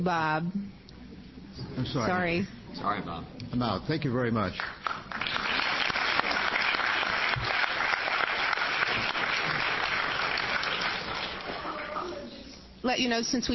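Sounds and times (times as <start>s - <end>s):
speech: 0.0s - 0.8s, 1.6s - 5.2s, 12.8s - 13.5s
audience applause at a public budget hearing: 4.6s - 12.3s.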